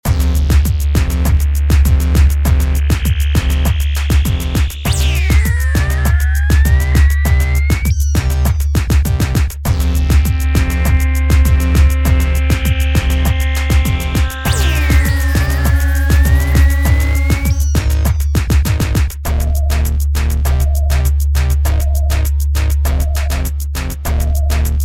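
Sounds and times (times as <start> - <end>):
lengthy beat: 0.0 - 24.8.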